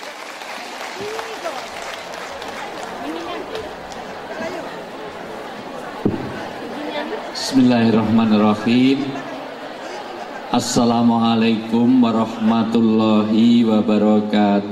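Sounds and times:
audience applause welcoming an Islamic preacher: 0.0s - 7.3s
crowd chatter: 0.0s - 14.7s
laughter: 1.0s - 12.9s
speech: 7.5s - 9.3s, 10.5s - 14.7s.

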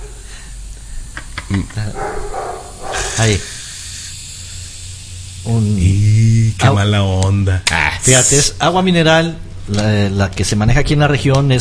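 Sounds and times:
speech: 1.5s - 2.4s, 3.2s - 3.5s, 5.4s - 11.5s
flat tire deflating: 2.0s - 7.0s, 8.0s - 8.6s.

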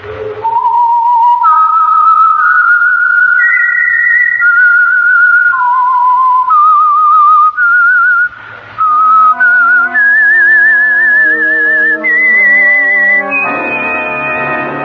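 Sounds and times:
lone whistler whistling a radio theme: 0.2s - 14.8s
sustained instrumental chords: 8.9s - 14.8s.

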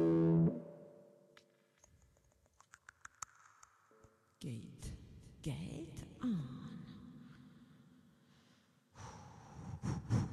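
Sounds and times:
loud instrument note with church-like reverb: 0.0s - 1.0s
speech: 4.4s - 6.9s.

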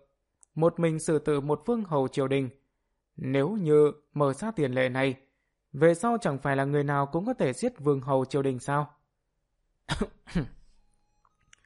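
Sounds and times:
speech: 0.6s - 2.6s, 3.2s - 9.0s, 9.9s - 10.6s
dry coughs: 9.9s - 10.8s.

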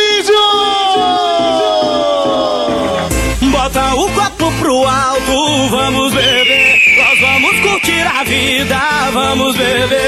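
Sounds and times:
crowd cheering shout: 0.2s - 3.2s, 6.2s - 8.8s
speech: 4.6s - 10.0s.

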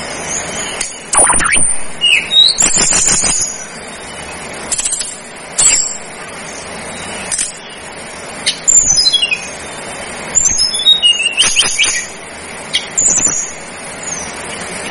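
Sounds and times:
Sunda whistling thrush singing: 0.3s - 4.4s, 6.9s - 14.4s.

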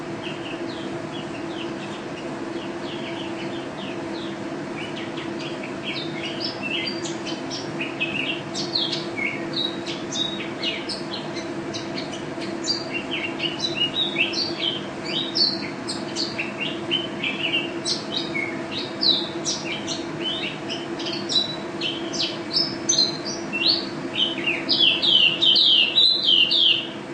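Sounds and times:
white-eye twittering: 0.2s - 27.0s.

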